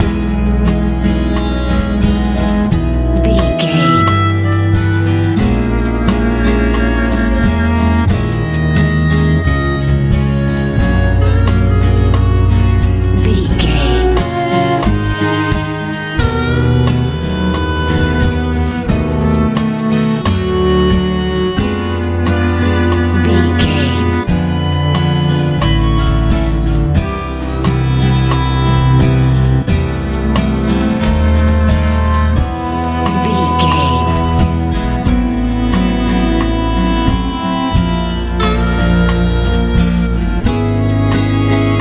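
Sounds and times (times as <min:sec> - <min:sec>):
happy light pop music: 0:00.0 - 0:41.7.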